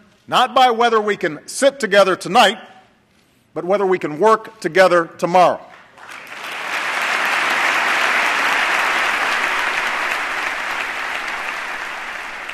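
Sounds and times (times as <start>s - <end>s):
speech: 0.3s - 2.7s, 3.6s - 5.7s
audience applause in a chamber: 6.0s - 12.5s.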